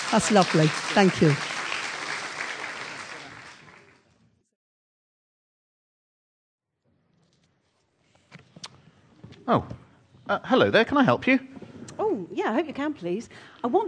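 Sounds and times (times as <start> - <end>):
audience clapping: 0.0 - 4.2
speech: 0.1 - 1.5, 9.5 - 13.8.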